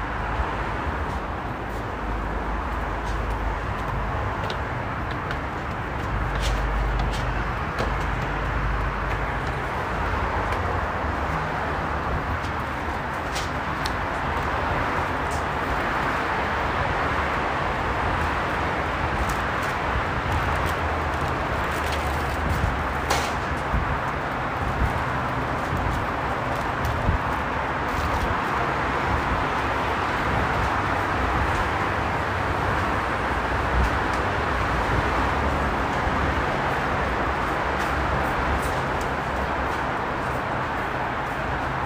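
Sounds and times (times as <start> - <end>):
vehicle rumble: 0.0 - 41.8.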